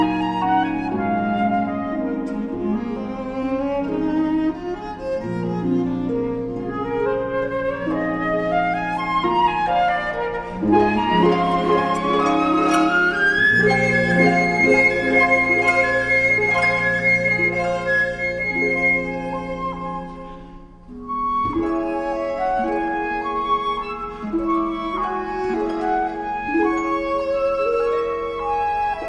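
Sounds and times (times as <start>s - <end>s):
sonatina for flute viola and harp: 0.0s - 29.0s.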